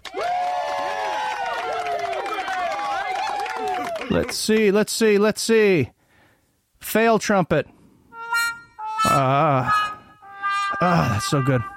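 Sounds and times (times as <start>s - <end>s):
applause sound effect: 0.0s - 4.8s
speech: 4.1s - 6.0s, 6.9s - 7.7s, 9.2s - 9.8s, 10.8s - 11.7s.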